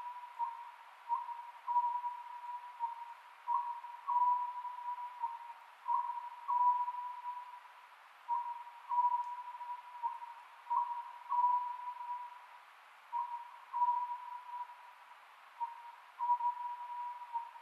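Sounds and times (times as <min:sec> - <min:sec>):
Oriental scops owl hooting: 0:00.0 - 0:07.6, 0:08.3 - 0:12.4, 0:13.1 - 0:14.9, 0:15.6 - 0:17.6
steady hiss: 0:00.0 - 0:17.6.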